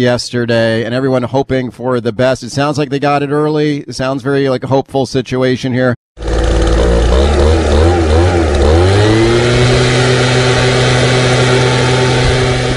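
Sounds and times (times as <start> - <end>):
speech: 0.0 - 6.0
gas-powered leaf blower running: 6.2 - 12.7.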